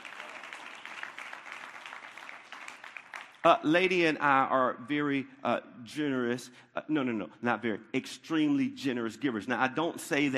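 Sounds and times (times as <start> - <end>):
audience applauding: 0.0 - 3.6
speech: 3.4 - 10.3.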